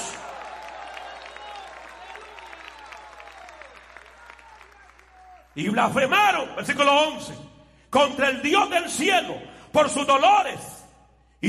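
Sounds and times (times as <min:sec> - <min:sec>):
audience applause: 0:00.0 - 0:05.6
speech: 0:05.6 - 0:10.7.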